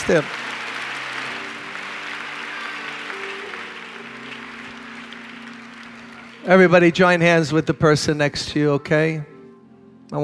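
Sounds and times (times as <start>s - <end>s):
audience clapping hands: 0.0s - 8.0s
speech: 0.1s - 0.4s, 6.4s - 9.3s.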